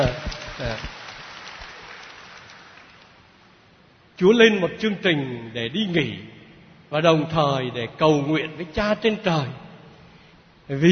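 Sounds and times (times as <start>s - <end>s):
audience applause: 0.0s - 3.2s
speech: 4.2s - 9.6s, 10.7s - 10.9s.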